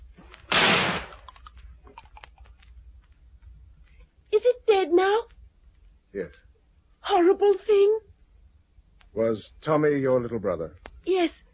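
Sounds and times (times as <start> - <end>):
gunshot fired at a creature in a garden: 0.5 - 1.3
speech: 4.9 - 5.3, 6.1 - 6.5, 7.1 - 8.1, 9.2 - 11.5.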